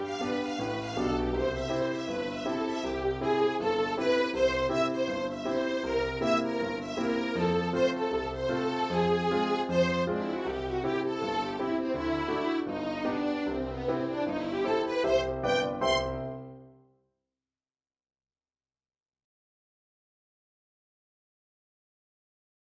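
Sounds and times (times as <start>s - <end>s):
ragtime piece: 0.0s - 16.6s.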